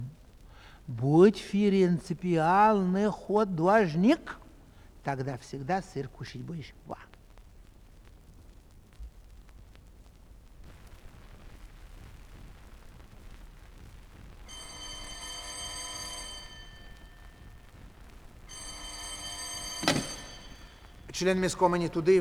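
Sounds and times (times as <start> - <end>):
speech: 0.9 - 4.4, 5.0 - 7.1, 21.2 - 22.1
old telephone bell ringing: 14.5 - 22.1.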